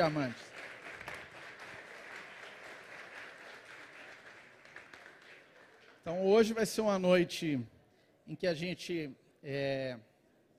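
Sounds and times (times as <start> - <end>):
speech: 0.0 - 0.5, 6.0 - 7.7, 8.3 - 10.1
audience applause: 0.0 - 6.0.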